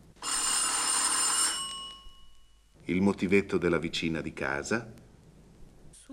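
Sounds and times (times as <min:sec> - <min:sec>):
electric doorbell trilling: 0:00.2 - 0:02.4
speech: 0:02.9 - 0:05.0.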